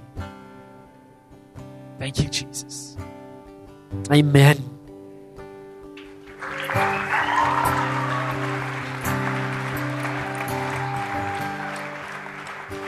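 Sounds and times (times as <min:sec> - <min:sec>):
speech: 0:02.0 - 0:03.1, 0:03.9 - 0:04.7
audience clapping: 0:06.0 - 0:12.8.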